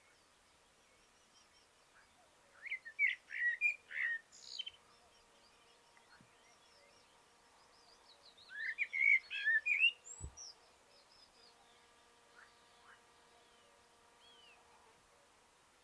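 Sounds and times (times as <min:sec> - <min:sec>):
Common blackbird Turdus merula singing: 0:00.0 - 0:14.6.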